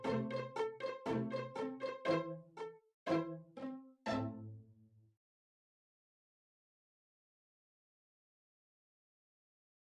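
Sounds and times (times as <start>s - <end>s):
pizzicato strings: 0.0s - 4.7s.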